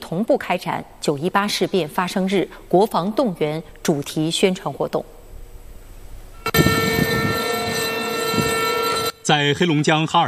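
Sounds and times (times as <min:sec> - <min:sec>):
speech: 0:00.1 - 0:05.2, 0:09.3 - 0:10.2
air raid siren: 0:06.4 - 0:09.3.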